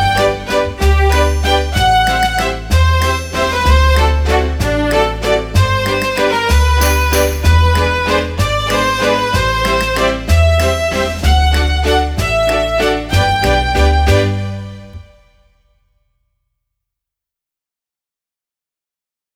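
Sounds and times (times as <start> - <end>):
lyrical waltz: 0.0 - 15.2.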